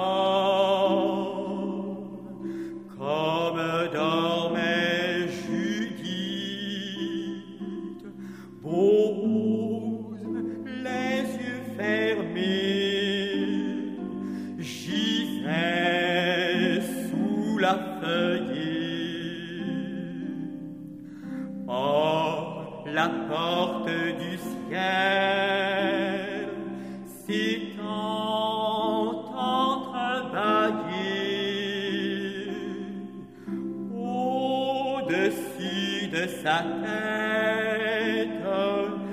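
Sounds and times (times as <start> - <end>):
harp: 0.0 - 39.1.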